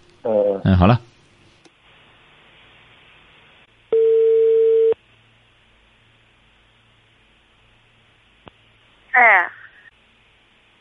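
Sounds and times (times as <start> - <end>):
speech: 0.2 - 1.1
phone line connecting tone beep: 3.9 - 5.0.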